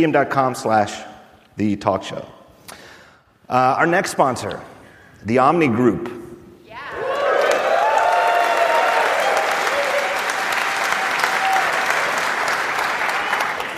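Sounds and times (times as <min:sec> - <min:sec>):
speech: 0:00.0 - 0:02.4, 0:03.5 - 0:06.2
loud sustained applause from a large live crowd: 0:07.0 - 0:13.7.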